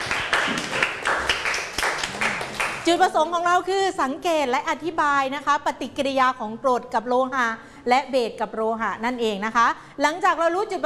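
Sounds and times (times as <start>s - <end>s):
classroom applause: 0.0s - 2.9s
speech: 2.9s - 10.8s.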